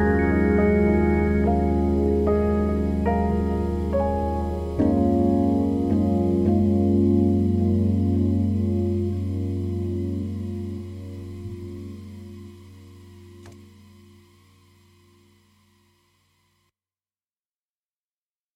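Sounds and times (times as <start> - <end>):
lofi chill music from a scratched CD-RW: 0.0 - 14.3.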